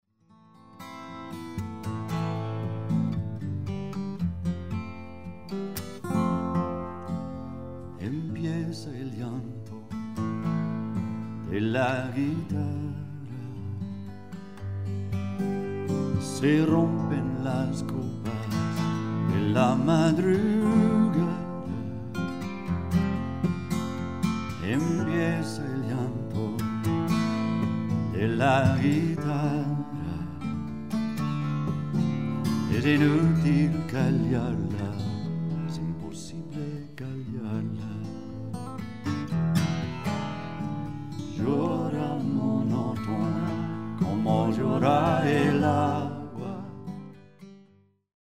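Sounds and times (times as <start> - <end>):
guitar: 0.1 - 48.0.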